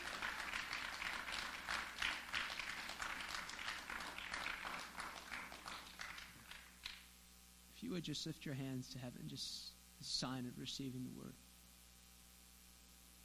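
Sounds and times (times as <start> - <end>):
audience clapping: 0.0 - 7.1
speech: 7.8 - 11.5.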